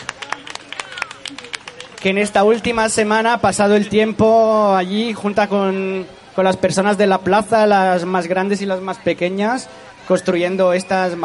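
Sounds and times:
audience applause: 0:00.0 - 0:02.4
speech: 0:02.0 - 0:11.2.

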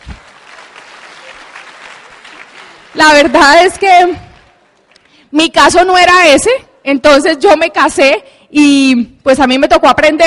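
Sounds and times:
audience applause: 0:00.0 - 0:05.0
speech: 0:03.0 - 0:04.3, 0:05.3 - 0:10.2.

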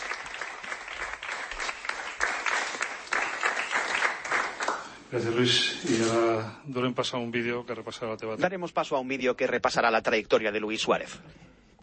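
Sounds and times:
enthusiastic applause: 0:00.0 - 0:05.0
speech: 0:05.1 - 0:11.4.

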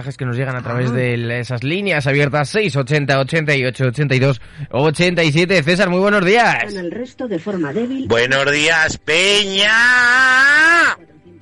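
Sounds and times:
speech: 0:00.0 - 0:11.1
loud shout: 0:09.2 - 0:11.0.

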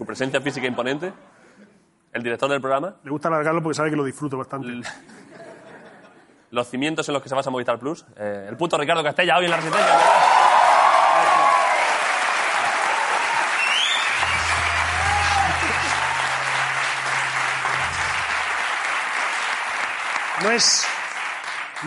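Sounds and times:
speech: 0:00.1 - 0:01.4, 0:02.1 - 0:05.2, 0:06.5 - 0:10.3, 0:20.5 - 0:20.9
studio audience applause: 0:09.5 - 0:21.8.

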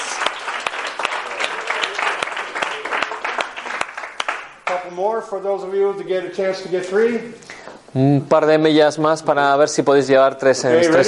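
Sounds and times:
audience clapping: 0:00.0 - 0:05.0
speech: 0:04.8 - 0:11.0.

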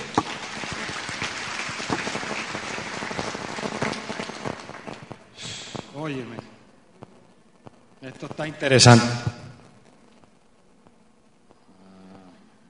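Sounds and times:
applause: 0:00.0 - 0:05.9
speech: 0:06.0 - 0:06.5, 0:08.0 - 0:09.4.

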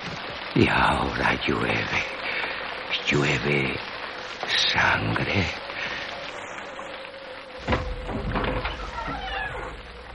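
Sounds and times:
speech: 0:00.6 - 0:02.2, 0:03.0 - 0:03.9, 0:04.6 - 0:05.6
door creaking open: 0:07.6 - 0:10.1.

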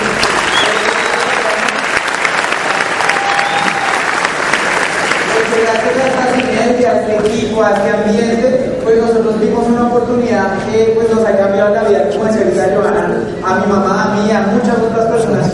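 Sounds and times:
loud applause: 0:00.0 - 0:06.6
speech: 0:07.0 - 0:15.5.

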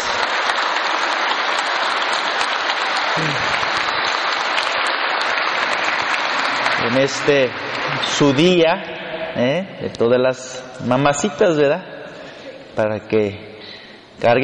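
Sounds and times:
audience applause: 0:00.0 - 0:08.6
speech: 0:06.9 - 0:11.9, 0:12.8 - 0:13.5, 0:14.2 - 0:14.4.

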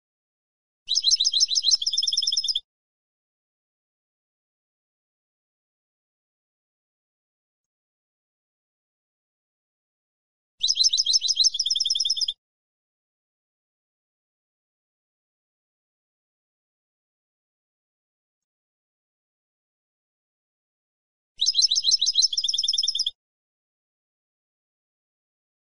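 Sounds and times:
European goldfinch song: 0:00.9 - 0:02.6, 0:10.6 - 0:12.4, 0:21.4 - 0:23.2.

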